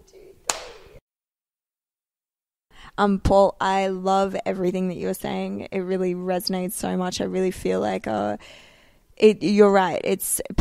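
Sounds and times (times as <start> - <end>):
hand clap for audio sync: 0.5 - 1.0
speech: 3.0 - 10.5.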